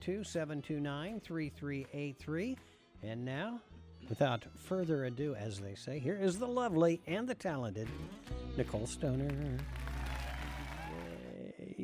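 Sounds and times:
speech: 0.0s - 9.9s
audience applause and cheering: 9.3s - 11.4s.

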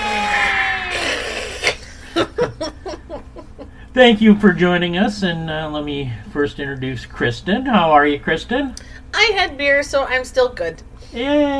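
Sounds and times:
crowd cheering wildly with whooping: 0.0s - 1.2s
short rhythmic laughing or cheering bursts: 1.6s - 4.0s
speech: 4.0s - 11.5s.

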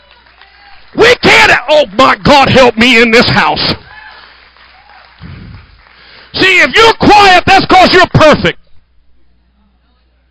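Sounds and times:
audience clapping: 0.0s - 6.8s
speech: 0.9s - 3.8s, 6.4s - 8.6s
low thumping: 5.2s - 5.8s.

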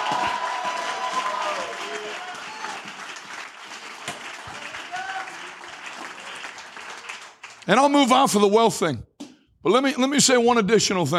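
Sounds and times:
audience applauding and clapping: 0.0s - 8.0s
speech: 7.7s - 11.1s.

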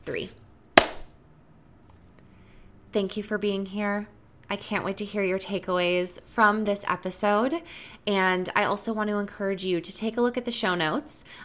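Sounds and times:
speech: 0.0s - 0.4s, 2.9s - 11.4s
hand clap: 0.8s - 1.1s.

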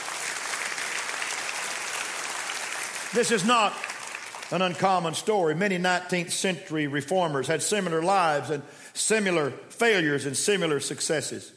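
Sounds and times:
crowd of people clapping their hands: 0.0s - 5.2s
speech: 3.1s - 3.9s, 4.5s - 11.5s.

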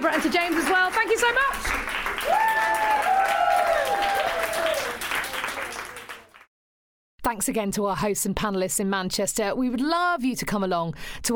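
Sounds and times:
audience applause: 0.0s - 6.5s
speech: 7.3s - 11.3s.

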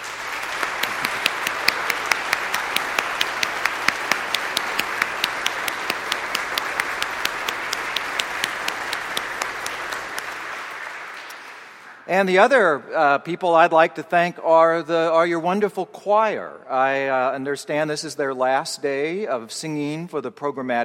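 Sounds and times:
audience applause: 0.0s - 12.1s
speech: 12.1s - 20.8s.

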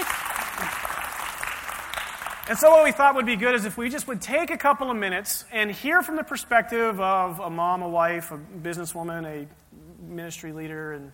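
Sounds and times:
audience applause: 0.0s - 2.9s
speech: 2.5s - 11.1s.

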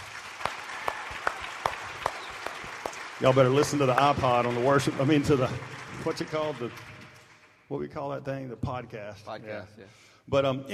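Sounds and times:
crowd applauding: 0.0s - 7.9s
speech: 3.2s - 6.9s, 7.7s - 10.7s.

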